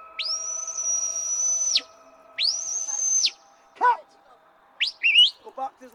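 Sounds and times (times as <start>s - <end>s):
sheepdog stop whistle blasts: 0.0s - 3.8s, 4.8s - 5.5s
speech: 5.8s - 5.9s.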